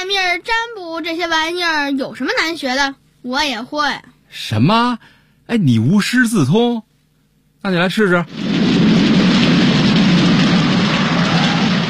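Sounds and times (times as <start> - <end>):
speech: 0.4 - 6.9, 7.6 - 8.5
rain falling: 8.3 - 11.8.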